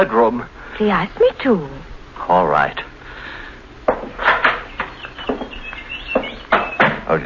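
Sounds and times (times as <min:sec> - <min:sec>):
speech: 0:00.0 - 0:02.9, 0:07.1 - 0:07.2
canaries chirping: 0:04.1 - 0:07.2.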